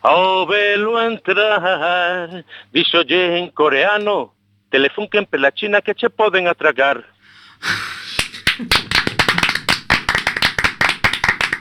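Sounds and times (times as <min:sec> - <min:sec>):
speech: 0:00.0 - 0:08.0
hands clapping in tribute to the composer of a song: 0:08.2 - 0:11.6.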